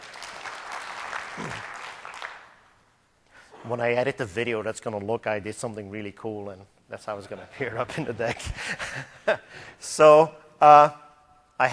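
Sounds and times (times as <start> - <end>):
audience applause: 0.0 - 2.6
speech: 3.6 - 11.0.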